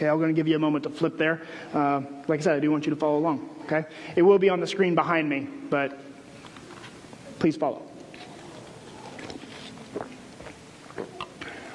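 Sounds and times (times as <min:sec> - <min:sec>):
speech: 0:00.0 - 0:06.1, 0:07.4 - 0:07.9
person drinking water: 0:08.0 - 0:11.7.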